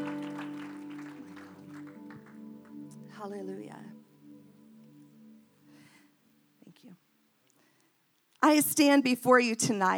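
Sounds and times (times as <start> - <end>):
audience clapping: 0.0 - 3.4
speech: 3.2 - 4.0, 8.4 - 9.9.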